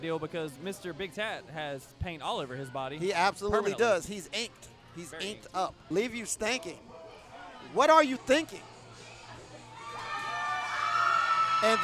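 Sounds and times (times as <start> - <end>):
speech: 0.0 - 6.9, 7.6 - 8.7, 11.6 - 11.8
crowd cheering: 9.8 - 11.8.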